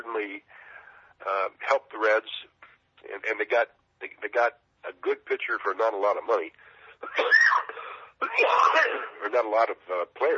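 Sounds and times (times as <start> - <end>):
speech: 0.2 - 0.5, 1.2 - 7.4, 8.3 - 10.3
person coughing: 7.0 - 9.2.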